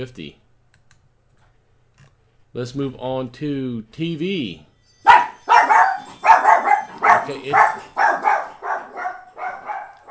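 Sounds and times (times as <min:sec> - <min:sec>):
speech: 0:00.0 - 0:00.4, 0:02.5 - 0:04.7, 0:07.2 - 0:07.9
dogs barking: 0:05.0 - 0:10.0.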